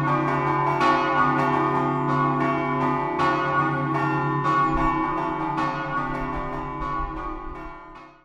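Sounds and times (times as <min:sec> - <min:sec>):
church bells chiming in a scampanottata: 0:00.0 - 0:08.2.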